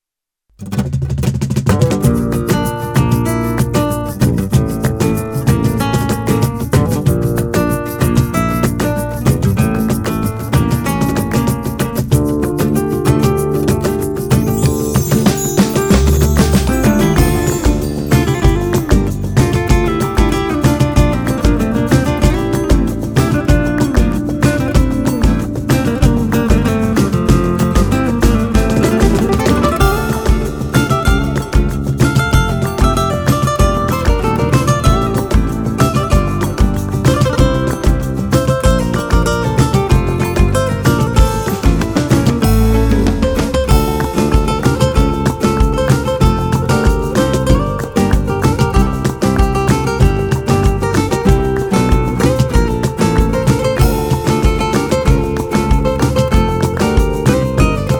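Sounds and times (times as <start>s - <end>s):
instrumental music: 0.6s - 57.9s.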